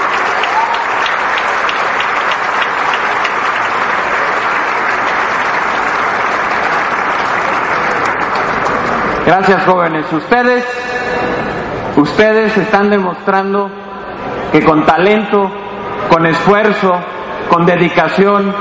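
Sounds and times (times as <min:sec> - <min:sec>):
loud applause for young scholarship students: 0:00.0 - 0:09.8
speech: 0:09.3 - 0:10.9, 0:12.0 - 0:13.8, 0:14.5 - 0:18.5.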